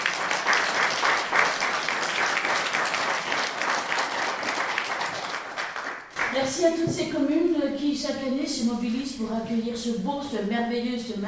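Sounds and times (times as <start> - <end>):
audience applause: 0.0 - 6.4
speech: 6.4 - 11.2.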